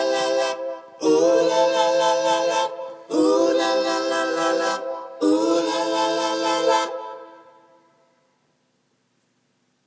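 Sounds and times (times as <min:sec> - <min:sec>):
backing vocal: 0:00.0 - 0:07.6.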